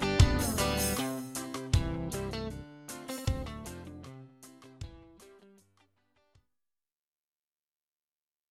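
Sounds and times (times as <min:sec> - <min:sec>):
Latin style guitar: 0:00.0 - 0:06.4.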